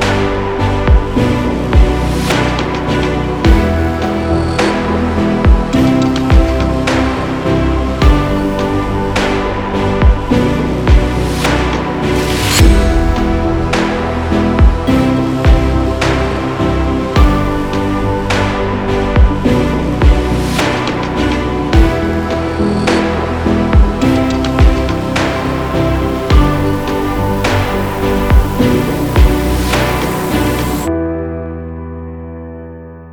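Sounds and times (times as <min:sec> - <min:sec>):
tense horror thriller music: 0:00.0 - 0:30.9.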